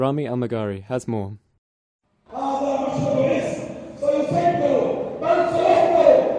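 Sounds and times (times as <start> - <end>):
speech: 0.0 - 1.4
large crowd at funeral procession in Gaza City: 2.3 - 6.3.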